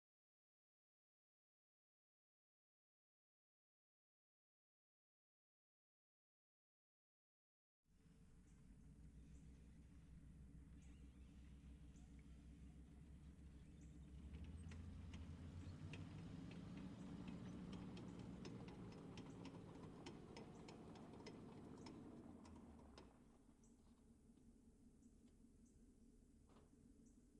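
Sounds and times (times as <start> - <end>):
Stuart M5A1 tank engine heard from outside: 8.0 - 27.3
Stuart M5A1 tank reversing: 8.2 - 24.2
Stuart M5A1 tank slowly moving off: 10.6 - 23.4.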